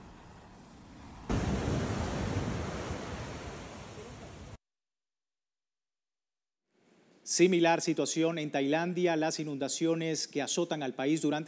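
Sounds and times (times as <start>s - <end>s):
high ocean waves crashing: 0.0s - 4.6s
speech: 7.3s - 11.4s.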